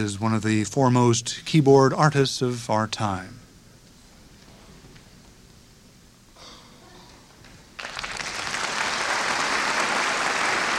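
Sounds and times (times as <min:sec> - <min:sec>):
speech: 0:00.0 - 0:03.4
enthusiastic concert audience applause: 0:07.8 - 0:10.7.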